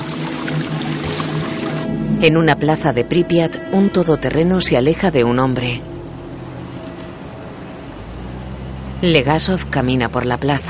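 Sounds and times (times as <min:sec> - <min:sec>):
foamy water running off a truck: 0:00.0 - 0:01.9
speech: 0:02.2 - 0:05.9, 0:09.0 - 0:10.6.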